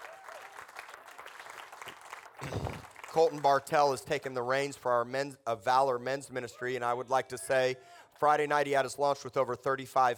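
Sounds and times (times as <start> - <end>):
audience clapping hands: 0.0 - 3.8
speech: 3.2 - 10.1.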